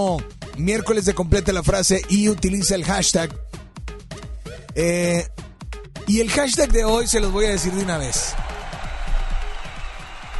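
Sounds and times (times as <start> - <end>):
speech: 0.0 - 3.6, 4.8 - 5.4, 6.1 - 8.4
audience applause: 7.0 - 10.3.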